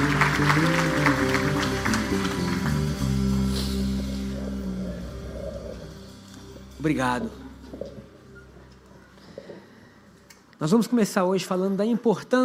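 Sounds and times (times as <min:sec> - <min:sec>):
crowd applauding: 0:00.0 - 0:04.3
sustained low organ-like keyboard chords: 0:00.0 - 0:09.4
speech: 0:00.4 - 0:00.9, 0:06.8 - 0:07.4, 0:10.6 - 0:12.4.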